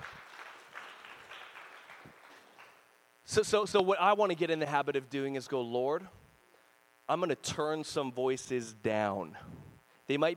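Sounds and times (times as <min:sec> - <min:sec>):
audience clapping: 0:00.0 - 0:02.8
speech: 0:03.3 - 0:06.2, 0:07.1 - 0:10.3.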